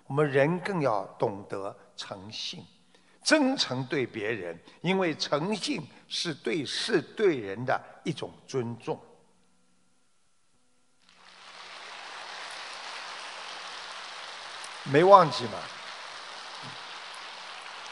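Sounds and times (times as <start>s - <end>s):
speech: 0.1s - 9.1s, 14.8s - 15.8s
audience applause: 11.1s - 17.9s.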